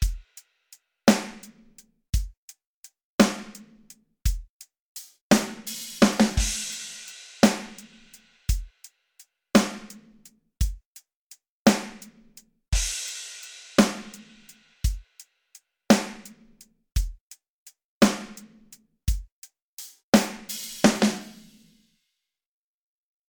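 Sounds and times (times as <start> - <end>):
dry drums: 0.0 - 0.4, 1.1 - 2.5, 3.2 - 8.8, 9.6 - 11.0, 11.7 - 15.2, 15.9 - 17.4, 18.0 - 21.6.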